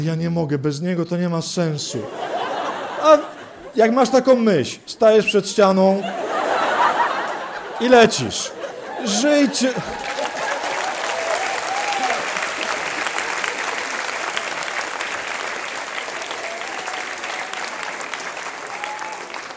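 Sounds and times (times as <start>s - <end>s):
speech: 0.0s - 6.3s, 7.8s - 10.1s
laughter: 1.8s - 4.1s, 5.9s - 14.7s
audience applause: 6.3s - 19.5s.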